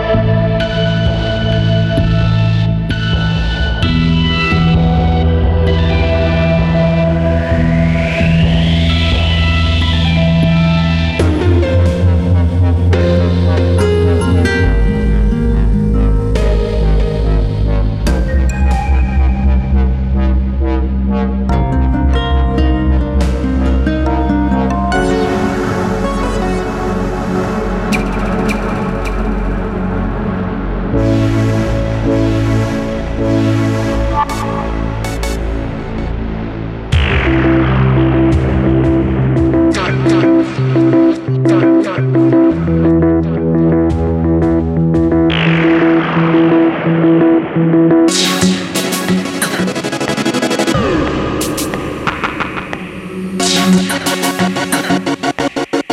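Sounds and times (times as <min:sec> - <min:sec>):
medley of melodic kits: 0:00.1 - 0:36.1, 0:36.9 - 0:55.9.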